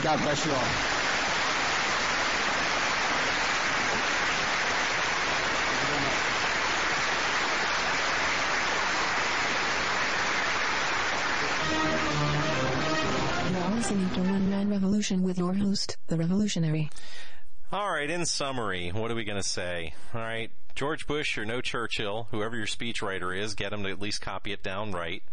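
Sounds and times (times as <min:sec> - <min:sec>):
speech: 0:00.0 - 0:01.0, 0:13.9 - 0:25.3
large crowd applauding at a military base speech: 0:00.0 - 0:14.4.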